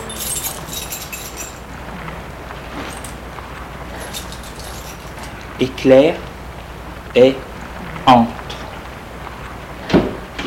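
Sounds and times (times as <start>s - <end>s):
house door opening with keys: 0.0s - 5.6s
speech: 5.6s - 6.3s, 7.1s - 8.4s.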